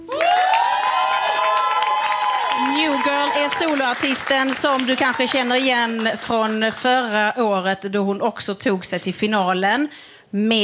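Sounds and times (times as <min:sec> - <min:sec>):
audience cheering and shouting in a music competition final: 0:00.0 - 0:05.8
audience clapping: 0:00.0 - 0:07.1
speech: 0:03.0 - 0:10.6.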